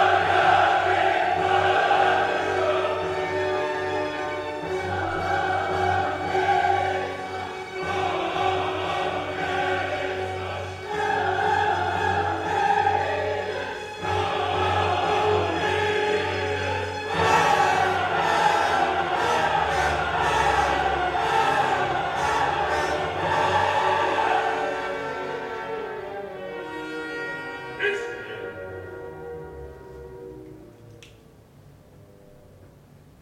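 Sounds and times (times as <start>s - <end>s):
peasant crowd singing in unison with high quasi-yodeling: 0.0s - 25.8s.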